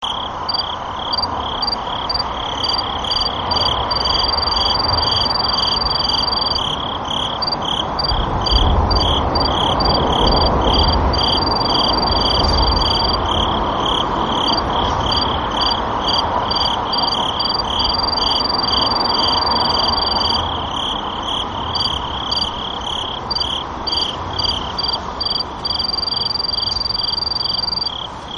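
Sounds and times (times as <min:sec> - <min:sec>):
insect pulsing: 0:00.0 - 0:28.1
sword-tail cricket chirping and trilling: 0:00.0 - 0:28.3.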